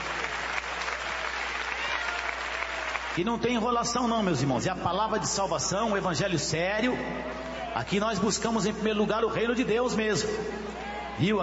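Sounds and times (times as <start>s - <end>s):
audience clapping hands: 0.0s - 3.6s
speech: 3.2s - 11.4s.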